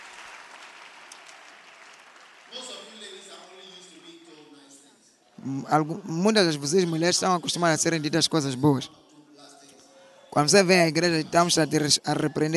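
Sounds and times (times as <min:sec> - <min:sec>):
audience applause: 0:00.0 - 0:03.6
speech: 0:05.4 - 0:09.0, 0:10.4 - 0:12.5.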